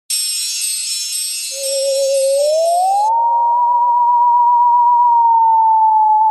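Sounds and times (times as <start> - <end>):
spooky sound: 1.3 - 6.3.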